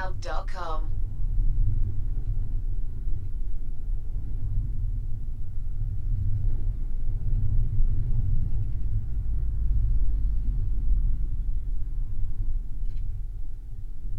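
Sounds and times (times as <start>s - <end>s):
wind: 0.0s - 14.1s.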